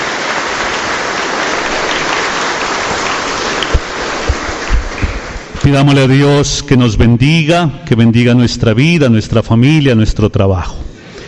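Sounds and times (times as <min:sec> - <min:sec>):
crowd clapping: 0:00.0 - 0:06.0
speech: 0:05.7 - 0:10.9.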